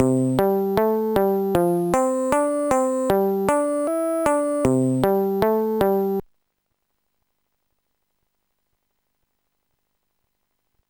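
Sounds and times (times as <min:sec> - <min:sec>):
bass: 0:00.0 - 0:06.2.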